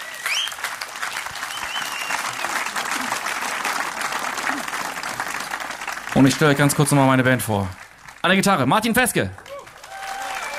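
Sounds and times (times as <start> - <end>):
whistles: 0.0 - 0.7, 1.4 - 2.7
festival audience applause: 0.0 - 10.5
speech: 6.2 - 9.4.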